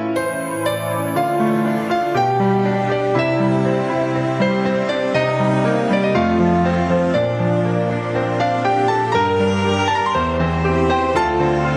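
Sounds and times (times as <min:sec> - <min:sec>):
ambient music: 0:00.2 - 0:11.7.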